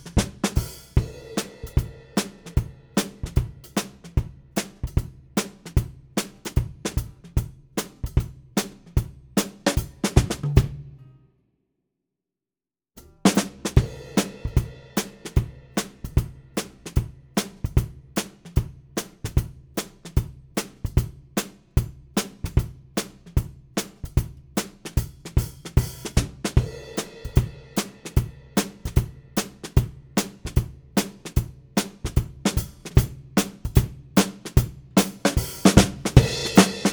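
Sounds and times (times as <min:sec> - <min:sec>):
ragtime drums: 0:00.0 - 0:10.9, 0:13.0 - 0:36.9.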